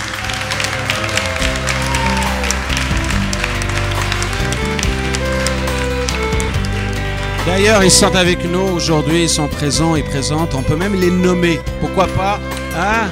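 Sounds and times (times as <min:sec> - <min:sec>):
audience applause: 0:00.0 - 0:09.2
speech: 0:07.5 - 0:13.0.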